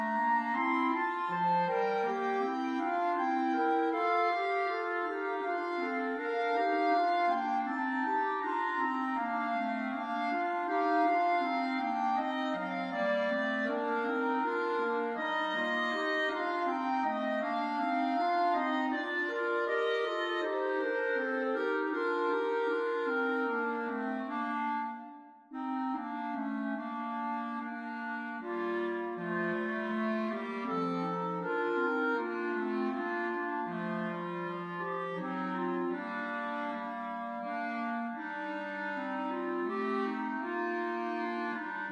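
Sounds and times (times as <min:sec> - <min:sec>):
clarinet trio playing: 0:00.0 - 0:41.9.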